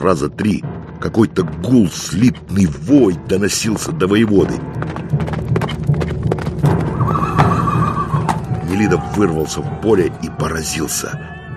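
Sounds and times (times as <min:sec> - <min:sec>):
speech: 0:00.0 - 0:05.0, 0:08.8 - 0:11.4
horse hooves galloping: 0:01.0 - 0:10.4
horse whinnying: 0:06.7 - 0:09.5.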